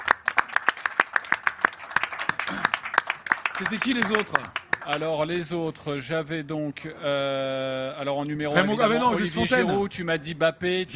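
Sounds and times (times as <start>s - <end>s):
applause: 0.0s - 5.2s
speech: 3.6s - 10.9s.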